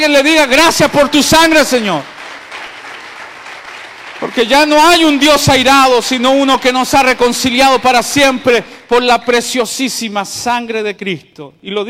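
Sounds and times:
speech: 0.0 - 2.1, 4.2 - 11.8
crowd applause: 1.8 - 5.2.

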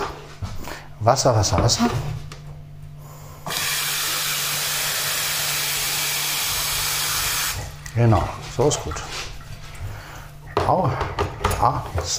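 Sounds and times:
speech: 1.0 - 2.2, 8.0 - 9.3, 10.7 - 12.1
coffee machine hissing steam while making coffee: 3.5 - 7.6.

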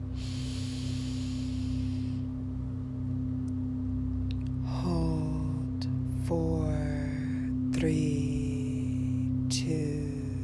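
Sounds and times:
low hum: 0.0 - 10.4
deep inhalation during a chakra breathing exercise: 0.1 - 2.3
speech: 7.8 - 8.4.

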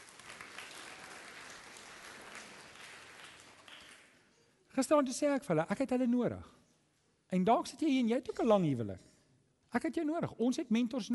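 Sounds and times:
audience applause: 0.0 - 4.2
speech: 4.8 - 6.6, 7.3 - 9.1, 9.7 - 11.1.

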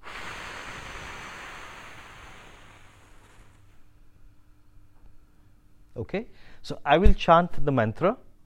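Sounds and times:
long breathy exhale during a group breathing exercise in Sweden: 0.0 - 3.8
speech: 6.0 - 8.3.

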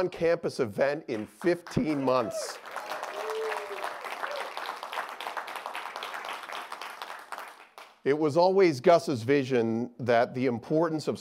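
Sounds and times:
speech: 0.0 - 2.9, 8.0 - 11.2
audience applause: 1.6 - 7.9.

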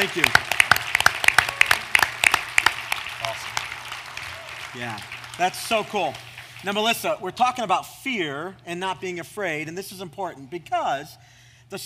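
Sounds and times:
speech: 0.0 - 0.6, 4.7 - 11.8
audience applauding with hand claps: 0.0 - 7.1.

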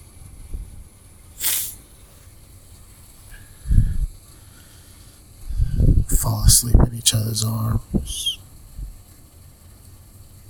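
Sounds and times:
soft rain: 0.4 - 10.4
gust of spray-like hissing: 1.4 - 3.5
speech: 6.2 - 8.4.

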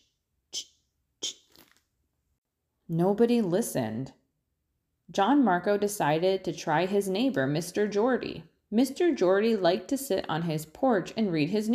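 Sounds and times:
voice imitating a grasshopper chewing grass: 0.0 - 1.8
speech: 2.9 - 4.2, 5.1 - 11.7.

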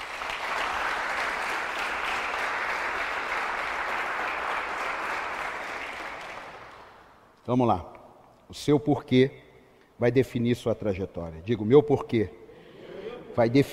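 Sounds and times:
audience applause: 0.0 - 7.0
speech: 7.5 - 7.9, 8.5 - 9.4, 10.0 - 12.4, 13.4 - 13.7.

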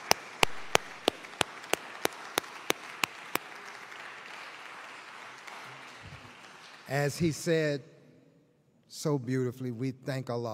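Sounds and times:
sharp evenly spaced claps: 0.0 - 5.8
audience applause: 0.0 - 6.9
speech: 6.9 - 7.9, 9.0 - 10.5.

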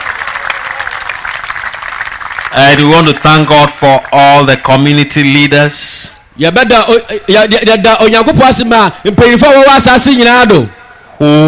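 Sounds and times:
audience clapping: 0.0 - 4.2
speech: 2.5 - 11.4.

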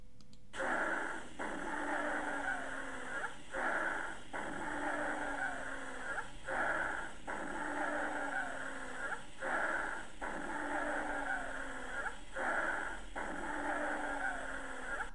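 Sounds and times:
wheezing lung sounds heard through a stethoscope: 0.6 - 15.1.

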